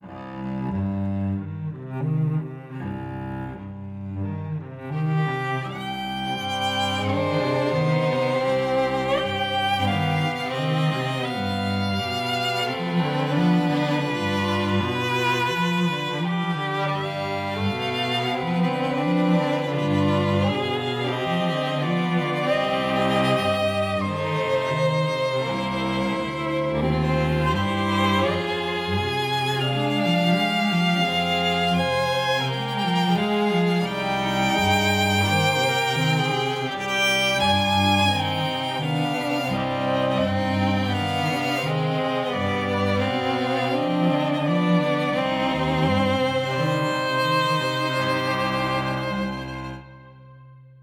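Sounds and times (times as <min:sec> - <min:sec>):
spooky quartet music: 0:00.0 - 0:50.3.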